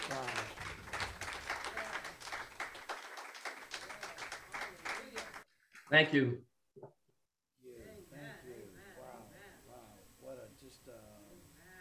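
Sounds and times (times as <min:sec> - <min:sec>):
audience hand clapping: 0:00.0 - 0:05.9
speech: 0:05.9 - 0:06.5.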